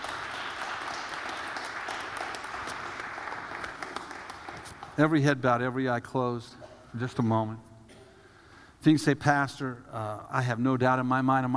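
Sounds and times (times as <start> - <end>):
audience clapping: 0.0 - 5.3
speech: 5.0 - 7.7, 8.8 - 11.5.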